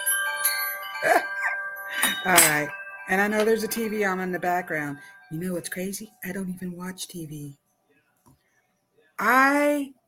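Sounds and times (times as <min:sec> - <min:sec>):
wind chimes: 0:00.0 - 0:07.0
speech: 0:01.0 - 0:07.6, 0:09.2 - 0:10.0.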